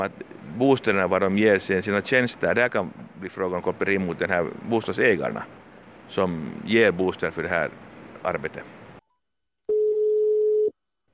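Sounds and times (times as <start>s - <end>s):
speech: 0.0s - 8.8s
ringback tone of an outgoing telephone call: 9.7s - 10.7s.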